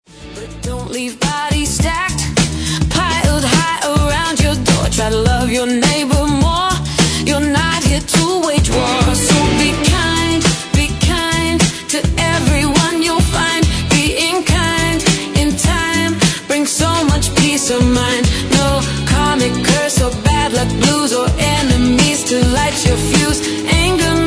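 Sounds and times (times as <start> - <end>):
Gwana funk EDM dance beat: 0.7 - 24.2.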